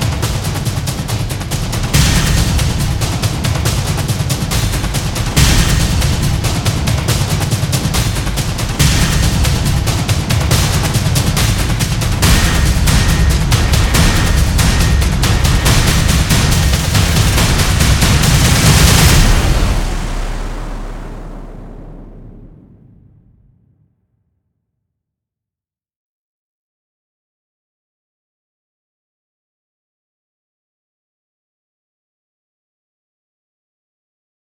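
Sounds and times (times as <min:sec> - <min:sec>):
percussion: 0:00.0 - 0:20.9.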